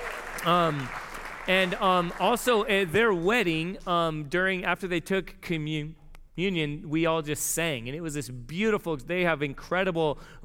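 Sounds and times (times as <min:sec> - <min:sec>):
audience applauding and cheering: 0:00.0 - 0:02.9
speech: 0:00.4 - 0:10.4.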